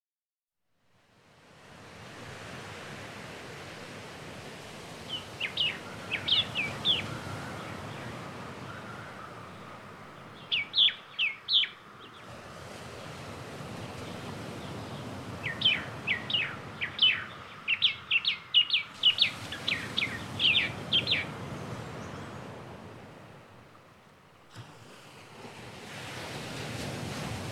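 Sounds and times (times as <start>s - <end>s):
tropical mockingbird singing: 5.1s - 8.0s, 10.3s - 12.2s, 15.4s - 21.3s.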